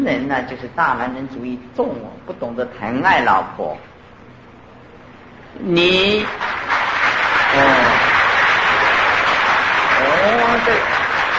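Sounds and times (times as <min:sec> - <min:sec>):
speech: 0:00.0 - 0:03.9, 0:05.5 - 0:06.8, 0:07.5 - 0:08.0, 0:10.2 - 0:11.0
loud audience applause: 0:06.2 - 0:11.3.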